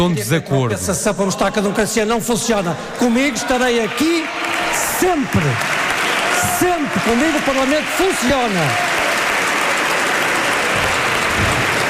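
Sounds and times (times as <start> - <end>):
speech: 0.0 - 4.4, 5.0 - 5.8, 6.6 - 9.0
applause in parliament chamber: 3.2 - 11.8.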